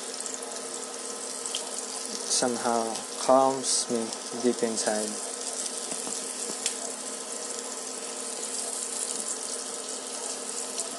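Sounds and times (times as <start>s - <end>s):
dense sizzle: 0.0s - 10.9s
speech: 2.4s - 5.3s
small pops and crackles: 5.6s - 6.8s.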